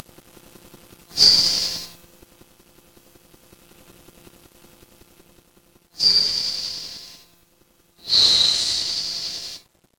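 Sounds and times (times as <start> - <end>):
forest ambience: 6.0 - 7.2, 8.0 - 9.6.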